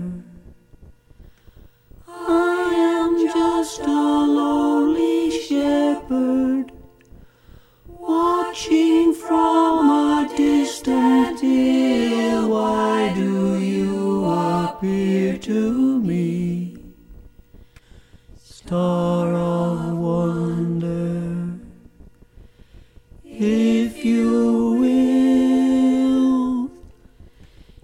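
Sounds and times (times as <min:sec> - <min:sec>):
choir harmonies singing a carol: 0:02.0 - 0:07.0, 0:07.9 - 0:17.1, 0:18.5 - 0:21.9, 0:23.2 - 0:27.1
alto voice singing a carol: 0:02.1 - 0:07.0, 0:07.9 - 0:17.0, 0:18.4 - 0:21.9, 0:23.3 - 0:27.0.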